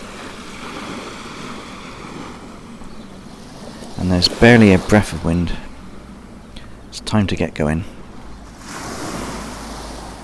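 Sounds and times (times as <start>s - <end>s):
waves washing onto a beach on a sunny almost windless day: 0.0s - 5.9s, 8.4s - 10.2s
speech: 4.0s - 5.7s, 7.1s - 8.0s.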